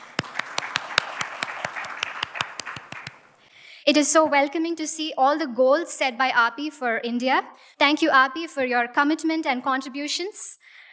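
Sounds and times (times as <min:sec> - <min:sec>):
round of applause: 0:00.0 - 0:03.3
speech: 0:03.9 - 0:10.6.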